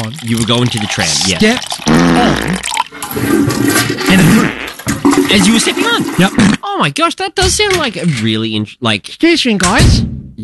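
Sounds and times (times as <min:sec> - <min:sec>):
toilet flushing: 0:00.0 - 0:06.6
speech: 0:00.0 - 0:10.4.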